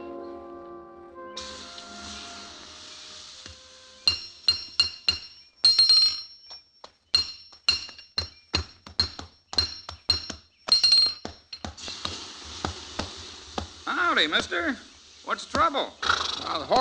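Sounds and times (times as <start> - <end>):
soft hissing noise: 1.4 - 5.3, 11.6 - 16.7
blacksmith's hammer striking metal: 3.5 - 11.8
speech: 14.2 - 16.7.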